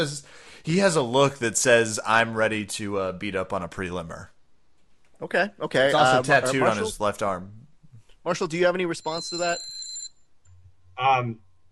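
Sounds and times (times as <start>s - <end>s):
speech: 0.0s - 4.3s, 5.2s - 7.6s, 8.2s - 9.7s, 11.0s - 11.5s
timer buzzer going off: 9.0s - 10.2s.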